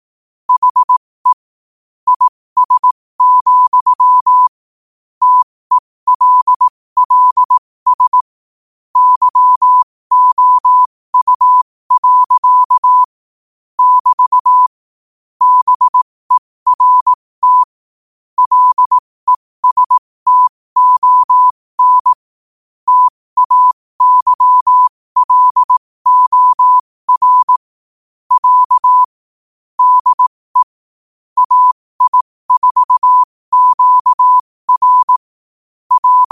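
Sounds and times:
morse code at 5 wpm: 0.5s - 1.4s, 2.1s - 4.5s, 5.2s - 8.3s, 9.0s - 13.1s, 13.8s - 14.7s, 15.4s - 17.8s, 18.4s - 22.3s, 22.9s - 27.6s, 28.3s - 29.2s, 29.8s - 30.8s, 31.4s - 35.3s, 35.9s - 36.3s.

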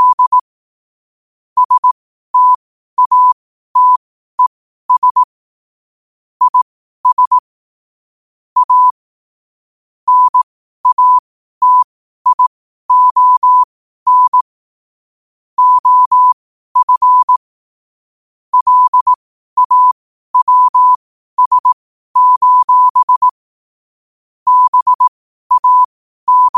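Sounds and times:
morse code at 5 wpm: 0.0s - 0.4s, 1.6s - 5.3s, 6.4s - 7.4s, 8.6s - 8.9s, 10.1s - 14.4s, 15.6s - 17.4s, 18.5s - 23.4s, 24.5s - 26.5s.

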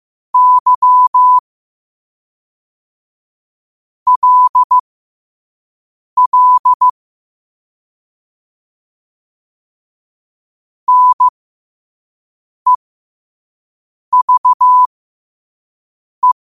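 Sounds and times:
morse code at 5 wpm: 0.4s - 1.4s, 4.1s - 4.8s, 6.2s - 7.0s, 10.9s - 11.3s, 14.1s - 14.9s.

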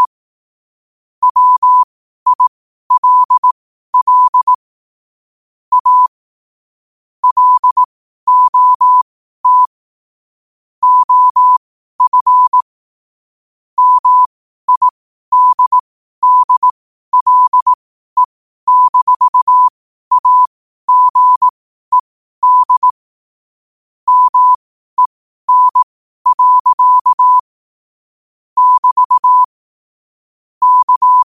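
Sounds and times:
morse code at 5 wpm: 1.2s - 4.6s, 5.7s - 6.1s, 7.2s - 9.7s, 10.8s - 12.7s, 13.8s - 23.0s, 24.1s - 27.5s, 28.6s - 29.5s, 30.6s - 31.2s.

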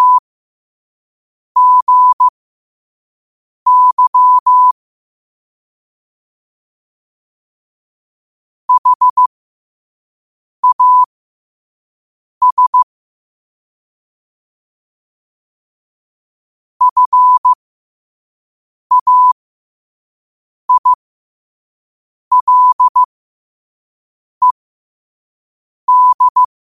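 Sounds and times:
morse code at 5 wpm: 0.0s - 0.2s, 1.6s - 2.3s, 3.7s - 4.8s, 8.7s - 9.3s, 10.6s - 11.1s, 12.4s - 12.9s, 16.8s - 17.6s, 18.9s - 19.4s, 20.7s - 21.0s, 22.3s - 23.1s, 25.9s - 26.5s.

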